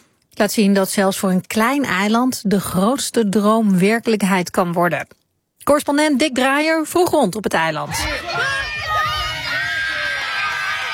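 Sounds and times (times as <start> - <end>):
speech: 0.4 - 8.6
mothers cheering on sideline: 7.9 - 10.9.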